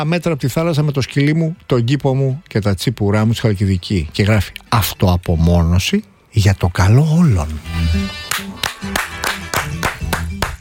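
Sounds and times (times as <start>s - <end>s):
speech: 0.0s - 8.2s
rhythmic clapping: 8.2s - 10.5s.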